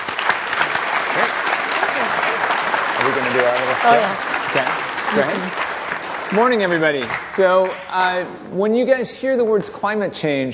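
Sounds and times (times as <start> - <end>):
audience applause welcoming presenters before a climate change talk: 0.0 - 8.3
speech: 3.2 - 5.7, 6.3 - 10.5.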